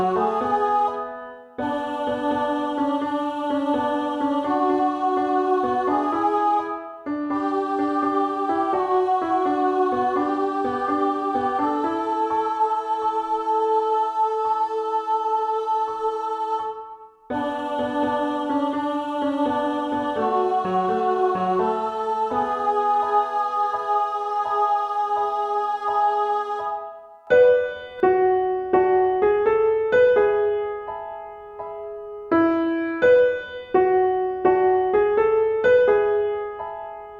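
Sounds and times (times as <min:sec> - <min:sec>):
soprano: 0:00.0 - 0:37.1.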